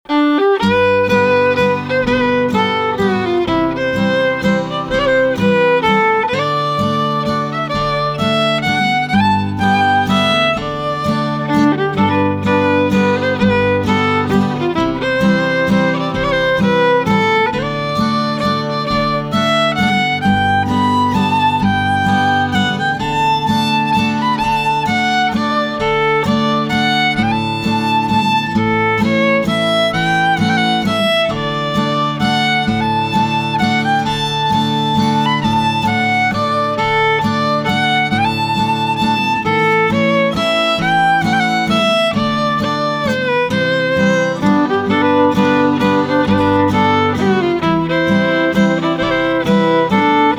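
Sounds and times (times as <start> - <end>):
waltz music: 0.0 - 50.3.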